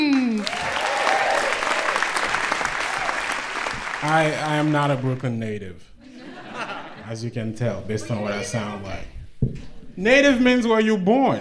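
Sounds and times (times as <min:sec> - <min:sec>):
comedy show audience applause: 0:00.0 - 0:05.4
speech: 0:04.0 - 0:05.9, 0:07.1 - 0:09.2, 0:10.0 - 0:11.3
laughter: 0:06.0 - 0:08.5.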